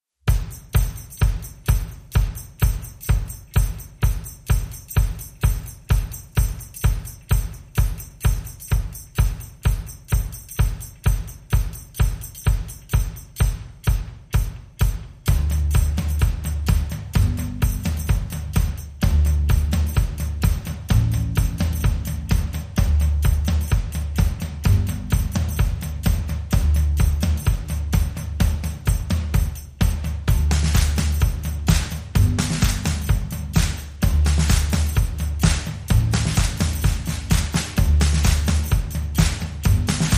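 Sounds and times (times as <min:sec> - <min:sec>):
drums: 0:00.2 - 0:40.1
bass: 0:00.3 - 0:40.1.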